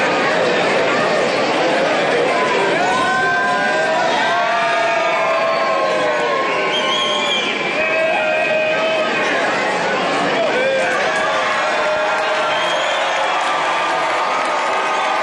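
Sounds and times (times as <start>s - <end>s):
large crowd cheering and shouting: 0.0s - 15.2s
scattered whistles in a crowd: 5.5s - 7.8s, 12.4s - 13.3s.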